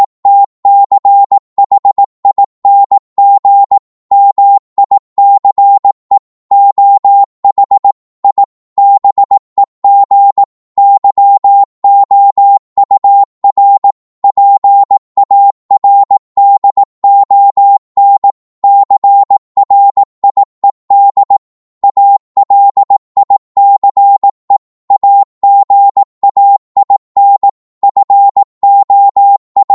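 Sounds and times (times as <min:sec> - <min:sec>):
Morse code at 18 words per minute: 0:00.0 - 0:29.7.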